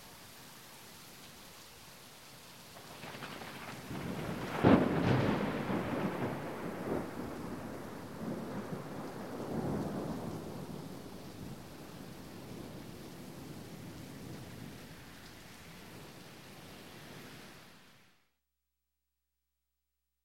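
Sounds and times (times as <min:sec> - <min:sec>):
heavy rain under a bridge: 0:00.0 - 0:18.3
thunder: 0:02.8 - 0:11.8.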